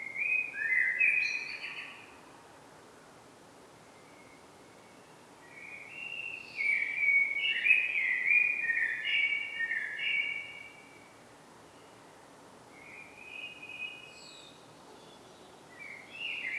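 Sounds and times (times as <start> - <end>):
common blackbird Turdus merula song: 0.1 - 2.1, 4.1 - 10.9, 12.8 - 16.5.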